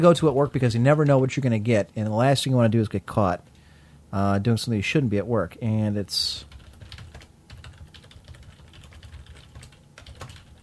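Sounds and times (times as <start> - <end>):
speech: 0.0 - 3.5, 4.1 - 6.6
typing a name into a website on a computer keyboard: 6.4 - 10.6.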